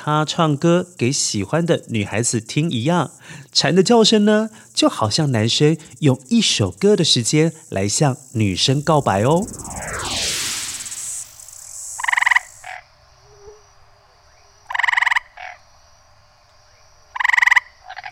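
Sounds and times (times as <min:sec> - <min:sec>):
speech: 0:00.0 - 0:10.2
frogs croaking: 0:12.0 - 0:18.1.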